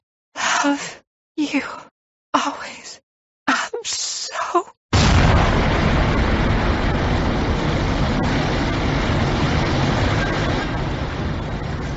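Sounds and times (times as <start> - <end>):
speech: 0.6 - 3.0
building explosion: 4.9 - 11.9.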